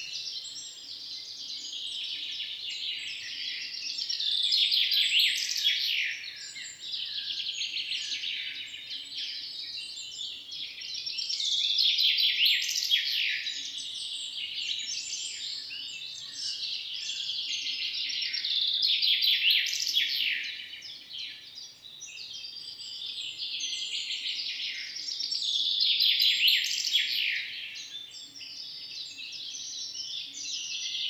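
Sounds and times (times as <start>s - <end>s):
bird chorus: 0.0s - 31.0s.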